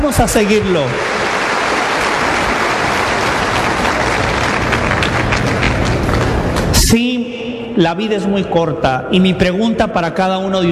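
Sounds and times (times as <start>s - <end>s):
speech: 0.0s - 1.8s, 7.8s - 10.7s
audience applause: 0.0s - 6.7s.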